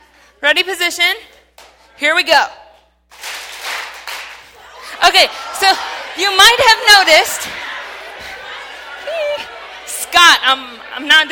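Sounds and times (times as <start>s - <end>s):
speech: 0.4s - 1.4s, 2.0s - 2.6s, 5.1s - 7.6s, 10.1s - 11.2s
hands clapping: 1.6s - 1.8s, 3.1s - 4.6s
laughter: 4.4s - 11.2s.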